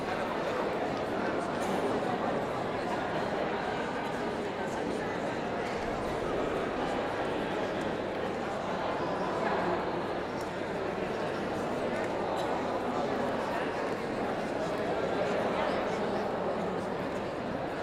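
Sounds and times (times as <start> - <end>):
people ambience in a large hall: 0.0 - 17.8.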